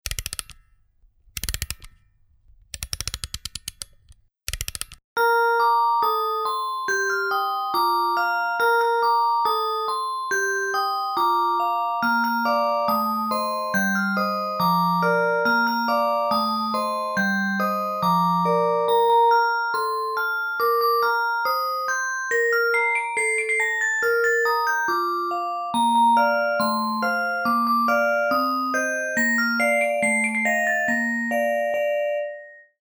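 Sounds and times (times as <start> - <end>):
music box: 5.2 - 32.8.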